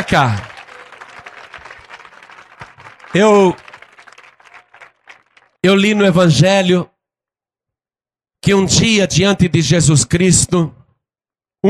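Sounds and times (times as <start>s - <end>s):
speech: 0.0s - 0.5s, 3.1s - 3.6s, 5.6s - 6.9s, 8.4s - 10.8s
audience applauding: 0.0s - 5.6s.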